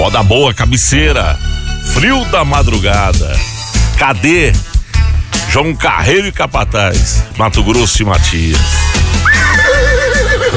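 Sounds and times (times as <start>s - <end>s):
speech: 0.1s - 4.7s, 5.5s - 10.5s
horse neighing: 9.2s - 10.5s.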